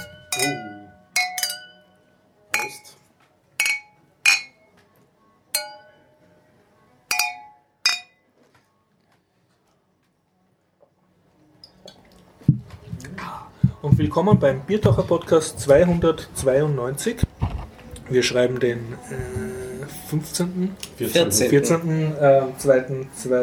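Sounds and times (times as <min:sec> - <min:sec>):
glasses clinking in a toast: 0:00.0 - 0:02.0, 0:03.6 - 0:04.7, 0:05.6 - 0:06.0, 0:07.1 - 0:08.2
speech: 0:00.4 - 0:00.7, 0:13.8 - 0:17.3, 0:18.1 - 0:23.4.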